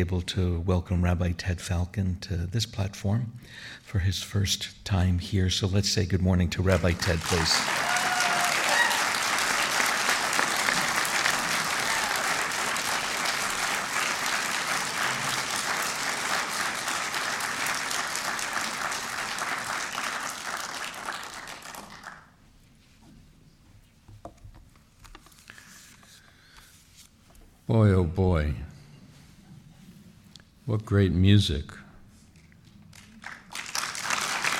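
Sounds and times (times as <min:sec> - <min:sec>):
speech: 0:00.0 - 0:07.9, 0:27.7 - 0:28.7, 0:30.7 - 0:31.8
audience applause for a guest rabbi: 0:06.7 - 0:22.3, 0:32.9 - 0:34.5.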